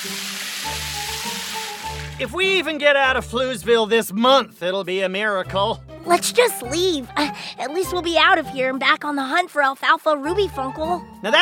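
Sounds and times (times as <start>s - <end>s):
speech: 0.0s - 1.0s, 2.2s - 11.3s
water cannon spraying: 0.0s - 2.3s.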